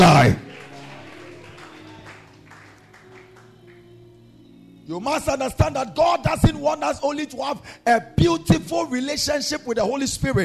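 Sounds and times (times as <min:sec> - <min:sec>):
crowd clapping: 0:00.0 - 0:04.2
sustained low musical chords: 0:00.0 - 0:09.2
speech: 0:04.9 - 0:10.4.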